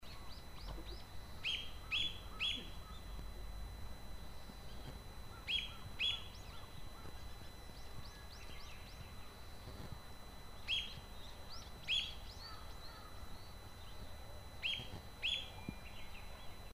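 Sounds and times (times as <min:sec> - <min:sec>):
low background hum: 0:00.0 - 0:16.7
masked laughingthrush ground calls: 0:00.1 - 0:03.2, 0:04.7 - 0:07.5, 0:11.8 - 0:13.2.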